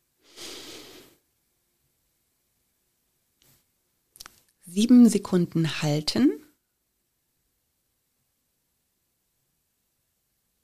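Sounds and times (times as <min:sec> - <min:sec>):
faint sniff: 0:00.2 - 0:01.2
slow inhale through the nose in a guided breathing exercise: 0:00.2 - 0:01.2
speech: 0:04.7 - 0:06.4.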